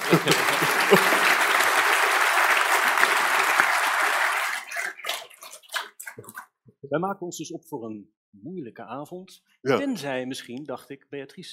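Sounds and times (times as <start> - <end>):
laughter: 0.0 - 3.8
audience applause: 0.0 - 6.4
speech: 0.1 - 1.2, 6.9 - 11.5.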